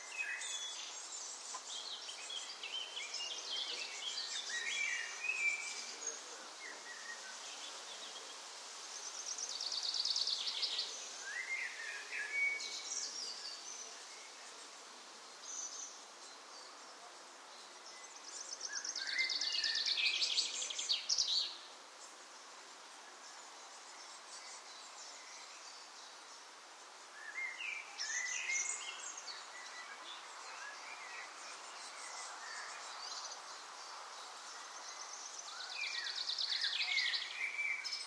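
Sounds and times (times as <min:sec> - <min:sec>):
birds on a balcony: 0:00.0 - 0:38.0.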